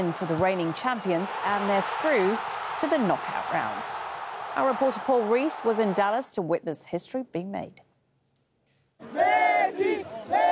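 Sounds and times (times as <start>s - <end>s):
stadium crowd of football fans roaring in Dallas Stadium: 0.0s - 6.4s, 9.0s - 10.4s
speech: 0.0s - 7.9s.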